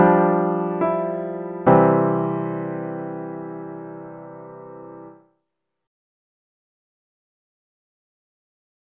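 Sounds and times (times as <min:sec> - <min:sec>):
fortepiano: 0:00.0 - 0:05.3.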